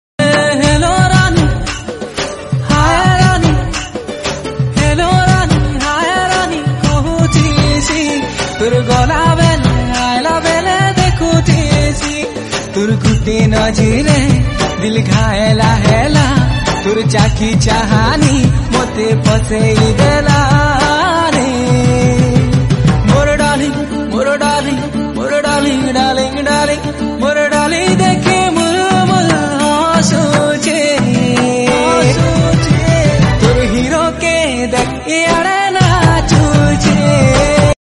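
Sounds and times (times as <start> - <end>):
Sambalpuri folk song: 0.2 - 37.8.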